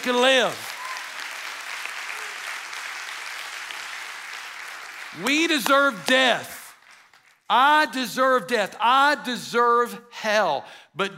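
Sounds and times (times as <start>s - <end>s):
speech: 0.0s - 0.7s, 5.1s - 6.6s, 7.5s - 11.1s
golf clap from audience: 0.0s - 7.5s.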